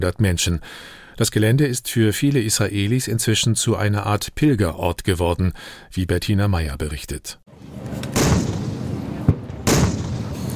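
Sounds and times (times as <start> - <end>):
speech: 0.0 - 8.1
Israeli army artillery fire at the Nova festival site near Re'im: 7.9 - 10.5.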